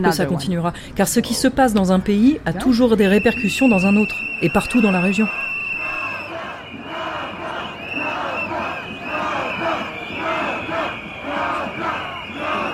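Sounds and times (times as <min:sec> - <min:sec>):
speech: 0:00.0 - 0:05.5
protest crowd chanting marching through Sarajevo's old town: 0:04.8 - 0:12.7.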